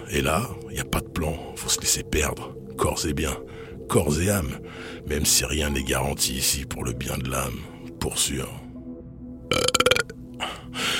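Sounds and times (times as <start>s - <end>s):
speech: 0.1s - 8.6s
burp after finishing a can: 9.5s - 10.2s.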